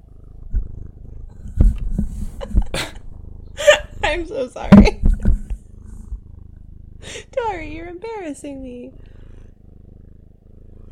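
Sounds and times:
cat rubbing against the microphone: 0.3 - 7.9
speech: 4.1 - 5.0, 7.0 - 9.0.

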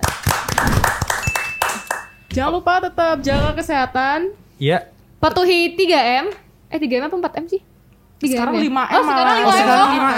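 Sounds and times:
clapping: 0.0 - 2.2
speech: 2.4 - 7.6, 8.2 - 10.1.

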